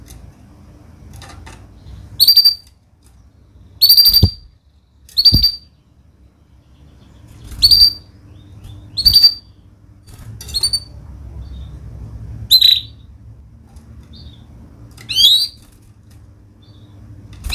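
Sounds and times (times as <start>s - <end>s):
canary singing a fast varied song: 1.8s - 2.7s, 3.8s - 4.5s, 5.1s - 9.7s, 10.4s - 11.9s, 12.5s - 13.2s, 14.1s - 15.7s.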